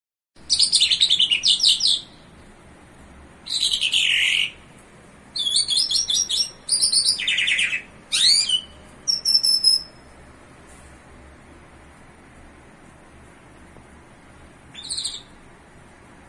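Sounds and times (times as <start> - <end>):
bimaculated lark singing: 0.4 - 2.2, 3.5 - 4.6, 5.4 - 10.0, 14.7 - 15.4.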